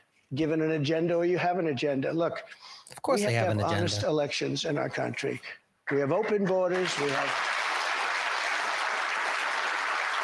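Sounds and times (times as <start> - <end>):
speech: 0.3 - 7.6
audience at a political town hall cheering and applauding: 6.8 - 10.2.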